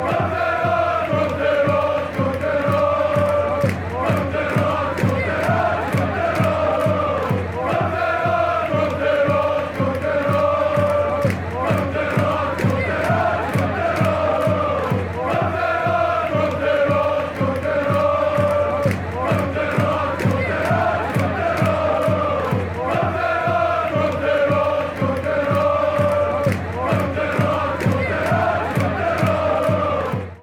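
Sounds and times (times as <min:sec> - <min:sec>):
fans chanting: 0:00.0 - 0:30.4.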